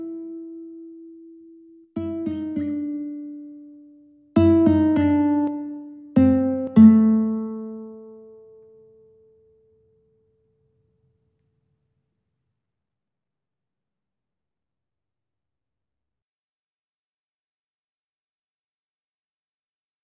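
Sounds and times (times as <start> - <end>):
guitar duet: 0.0 - 10.1.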